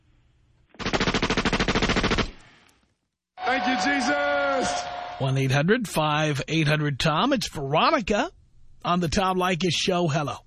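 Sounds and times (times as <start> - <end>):
machine gun sound effect burst: 0.8 - 2.4
speech: 3.6 - 10.4.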